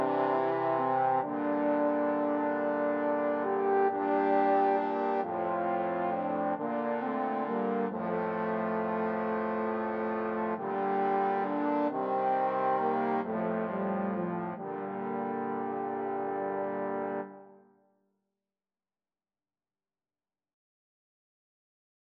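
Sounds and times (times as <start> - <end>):
trombone quartet: 0.0 - 17.4.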